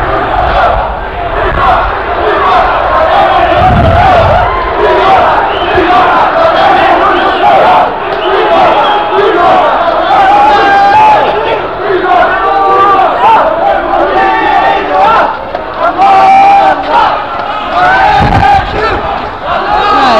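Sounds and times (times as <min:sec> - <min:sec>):
low thumps: 0:00.0 - 0:05.9
crowd of demonstrators shouting and chanting at a protest: 0:00.0 - 0:20.1.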